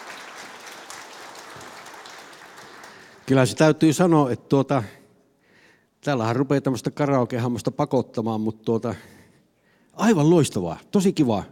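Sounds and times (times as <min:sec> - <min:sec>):
studio audience applause: 0:00.0 - 0:03.5
speech: 0:03.3 - 0:05.0, 0:06.0 - 0:09.2, 0:10.0 - 0:11.4.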